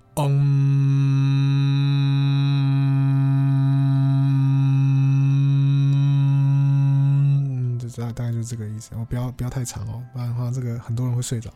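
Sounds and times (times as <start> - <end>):
person humming weng in imitation of a buzzing bee: 0.0 - 8.3
speech: 8.0 - 11.5.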